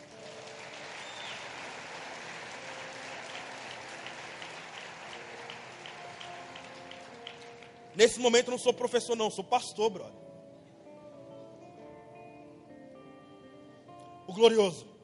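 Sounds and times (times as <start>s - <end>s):
audience applauding: 0.0s - 8.2s
speech: 8.0s - 10.2s, 14.4s - 14.9s.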